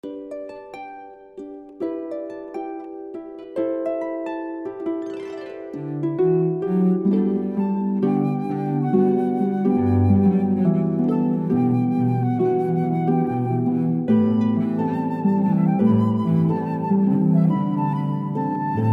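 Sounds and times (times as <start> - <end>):
harp: 0.0 - 18.9
flute: 0.7 - 18.9
cello: 5.7 - 18.9.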